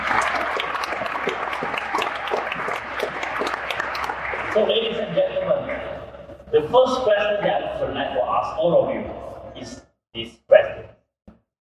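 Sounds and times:
audience applause: 0.0 - 5.8
speech: 6.6 - 10.3.

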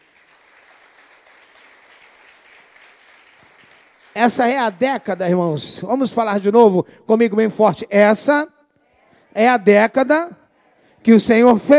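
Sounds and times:
audience applause: 0.0 - 5.2
speech: 4.2 - 8.6, 9.3 - 10.4, 11.0 - 11.7.

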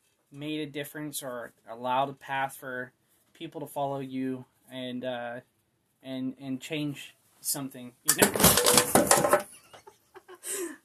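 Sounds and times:
speech: 0.3 - 9.4
chair breaking under a person: 8.1 - 9.5
scattered knocks and bumps: 8.1 - 9.7.

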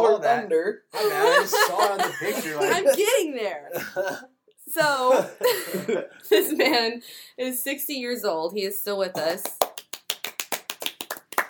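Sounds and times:
speech: 0.3 - 9.6
laughter: 1.0 - 4.2, 4.8 - 7.0
hands clapping: 1.9 - 3.2, 9.2 - 11.4.

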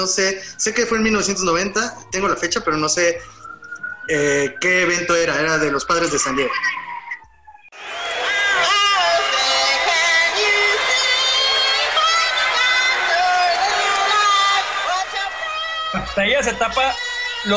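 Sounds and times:
speech: 0.0 - 3.4, 4.1 - 6.9, 16.2 - 17.5
large crowd booing and jeering at a singer: 6.2 - 17.5.

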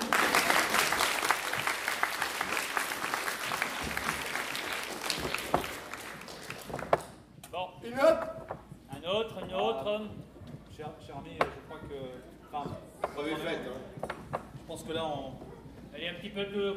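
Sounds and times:
audience applause: 0.0 - 7.1
speech: 9.2 - 10.2, 10.8 - 14.0, 14.7 - 15.4, 16.0 - 16.7.

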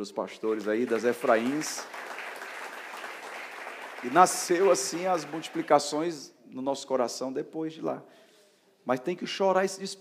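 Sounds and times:
speech: 0.0 - 2.2, 4.0 - 8.2, 8.8 - 9.9
audience applauding: 0.4 - 6.0.

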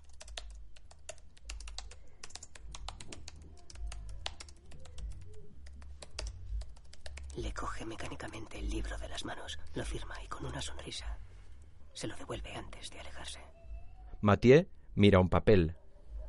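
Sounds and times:
rapid typing on a laptop keyboard: 0.0 - 7.4
speech: 7.4 - 11.3, 12.0 - 13.6, 14.2 - 15.8.

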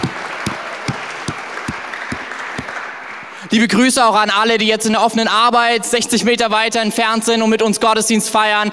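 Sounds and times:
audience applause: 0.0 - 3.4
speech: 3.5 - 8.7.

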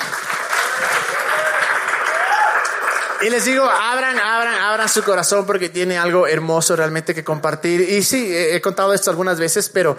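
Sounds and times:
audience applause: 0.0 - 5.3
speech: 3.2 - 9.9.

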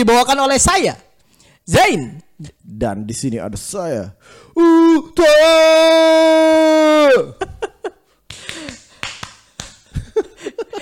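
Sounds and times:
speech: 0.0 - 1.0, 1.6 - 7.7
laughter: 7.3 - 8.9, 9.8 - 10.8
scout rhythmic hand clap pattern: 8.2 - 10.2.

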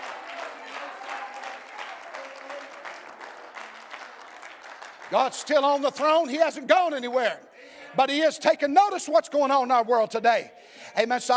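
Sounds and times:
audience clapping hands: 0.0 - 6.4
speech: 5.1 - 11.3.

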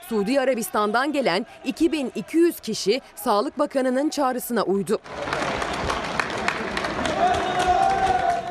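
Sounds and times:
crowd cheering: 0.0 - 4.4, 5.0 - 8.5
speech: 0.1 - 5.4
applause from a student dormitory: 5.0 - 8.5.

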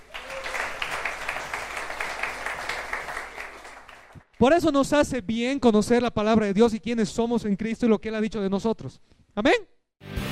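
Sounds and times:
audience applause: 0.0 - 4.2
speech: 4.4 - 10.2.

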